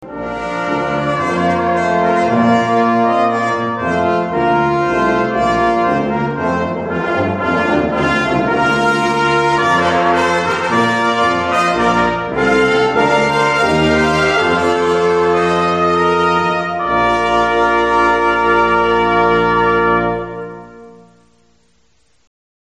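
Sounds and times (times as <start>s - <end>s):
trumpet piece: 0.0s - 21.9s.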